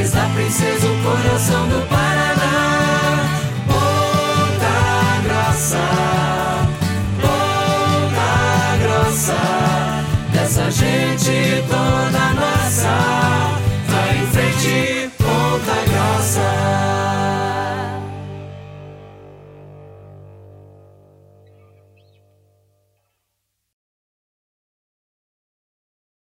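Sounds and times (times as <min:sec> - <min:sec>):
jingle: 0:00.0 - 0:18.4.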